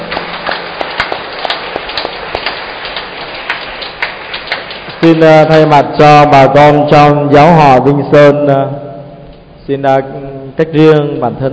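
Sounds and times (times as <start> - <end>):
audience applause: 0.0 - 5.7
speech: 5.0 - 8.8, 9.7 - 11.5.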